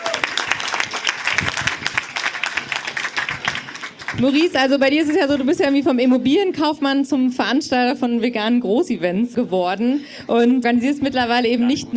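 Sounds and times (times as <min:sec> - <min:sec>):
audience applause for festival organizer: 0:00.0 - 0:05.5
speech: 0:04.2 - 0:11.9.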